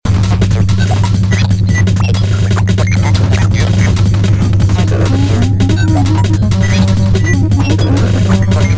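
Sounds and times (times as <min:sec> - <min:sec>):
glitch noise: 0:00.1 - 0:08.7.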